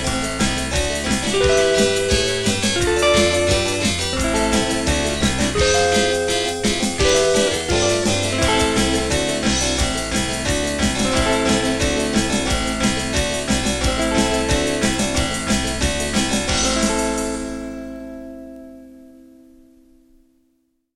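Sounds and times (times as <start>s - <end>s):
harpsichord: 0.0s - 19.2s
guitar: 0.0s - 20.7s.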